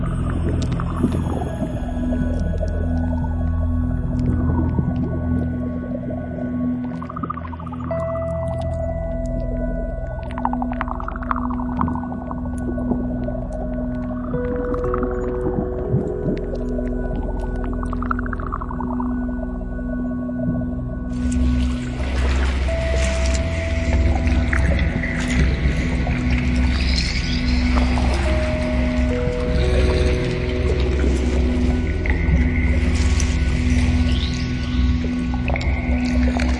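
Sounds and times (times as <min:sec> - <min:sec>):
underwater lifeforms: 0:00.0 - 0:36.5.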